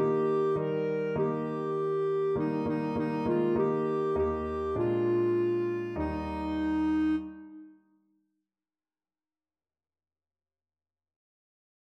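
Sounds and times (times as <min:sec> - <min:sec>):
clarinet: 0:00.0 - 0:07.8.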